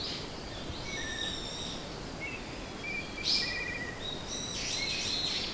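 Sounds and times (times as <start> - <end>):
bird calling with high twittering chirps and sharp notes: 0.1 - 5.5.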